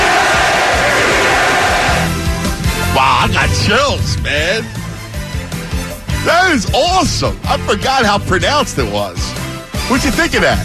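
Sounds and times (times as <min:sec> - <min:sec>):
arena crowd roaring and chanting: 0:00.0 - 0:03.9
speech: 0:03.7 - 0:04.8, 0:06.2 - 0:10.6.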